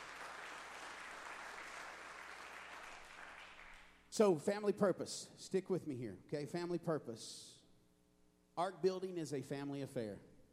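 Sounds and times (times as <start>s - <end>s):
audience hand clapping: 0.0s - 4.0s
speech: 4.2s - 7.6s, 8.6s - 10.3s.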